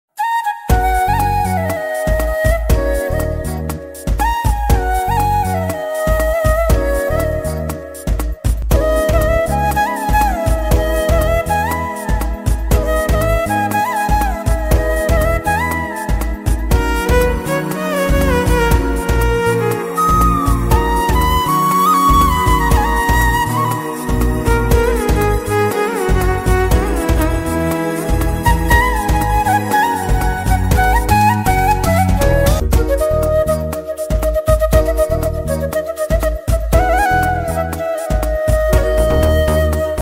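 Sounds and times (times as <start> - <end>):
flute ringtone: 0.2 - 40.0.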